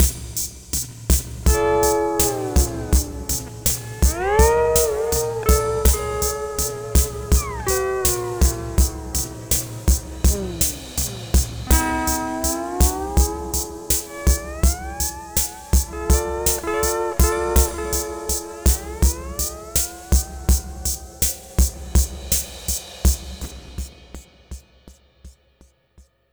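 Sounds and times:
lounge music: 1.4 - 21.2.

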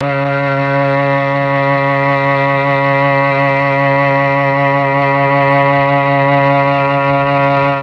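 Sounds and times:
C sharp 3 Tron cello note: 0.0 - 7.8.

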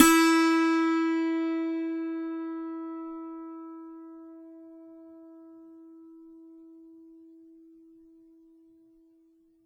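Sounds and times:
dulcimer beat in E4: 0.0 - 1.5.

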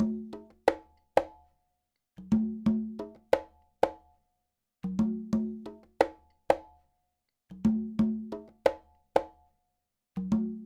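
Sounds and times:
conga Latin percussion: 0.0 - 1.5, 2.2 - 4.2, 4.8 - 6.8, 7.5 - 9.5, 10.2 - 10.6.

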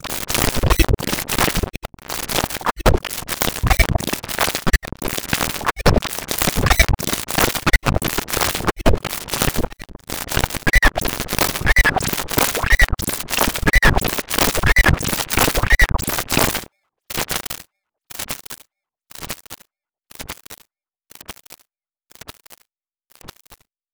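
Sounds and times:
glitch noise: 0.0 - 16.6.

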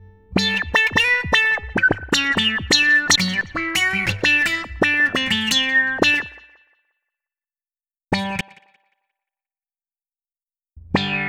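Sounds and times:
wah-wah guitar: 0.4 - 6.5.

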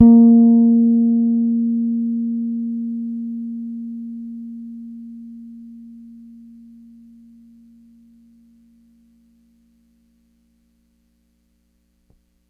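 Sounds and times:
Pedulla Thunderbass bass note A#4 played hard: 0.0 - 8.9.

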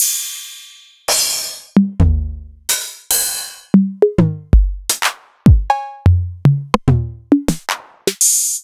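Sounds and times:
Novation Drumstation drum machine: 1.1 - 8.6.

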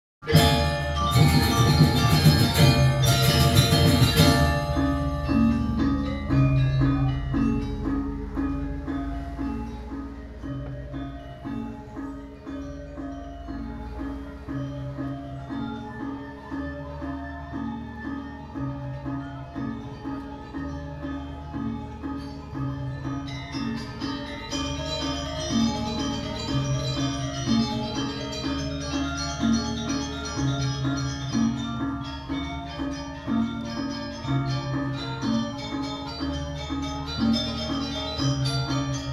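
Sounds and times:
gamelan: 0.2 - 39.1.

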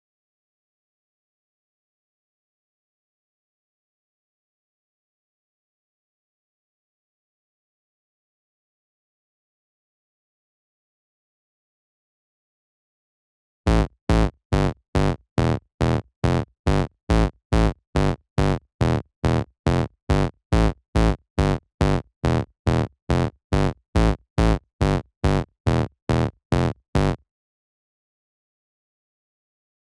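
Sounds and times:
bass line rooted on A: 13.7 - 27.2.

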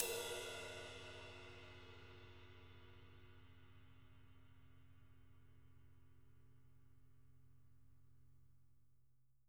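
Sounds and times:
live drums: 0.0 - 2.0.

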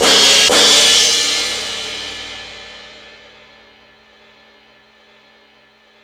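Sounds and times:
drum machine beat: 0.0 - 2.9.

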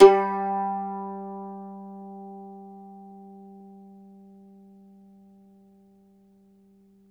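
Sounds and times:
mandolin plucked strings: 0.0 - 5.0.

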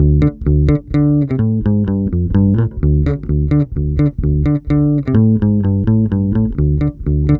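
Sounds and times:
bass: 0.0 - 7.3.

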